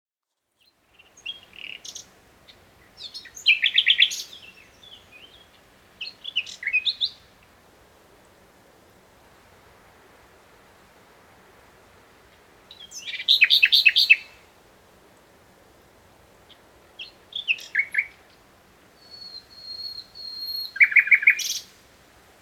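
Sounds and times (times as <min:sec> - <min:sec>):
common nightingale singing: 0:00.6 - 0:07.3, 0:12.3 - 0:14.5, 0:16.4 - 0:21.8.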